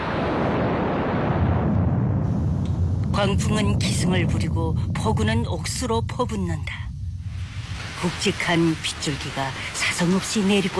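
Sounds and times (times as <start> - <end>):
loud thunder crash after lightning: 0.0 - 8.0
speech: 3.2 - 6.9, 8.0 - 10.7.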